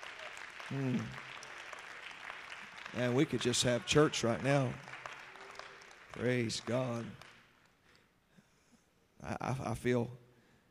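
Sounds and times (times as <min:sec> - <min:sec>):
audience clapping: 0:00.0 - 0:07.8
speech: 0:00.7 - 0:01.2, 0:02.9 - 0:04.9, 0:06.2 - 0:07.2, 0:09.2 - 0:10.2.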